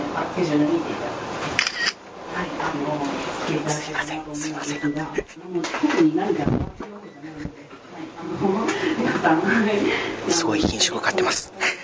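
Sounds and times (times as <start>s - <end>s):
speech: 0.2s - 1.6s, 2.7s - 11.8s
camera shutter click: 1.6s - 2.0s
laughter: 7.3s - 10.2s, 11.4s - 11.8s.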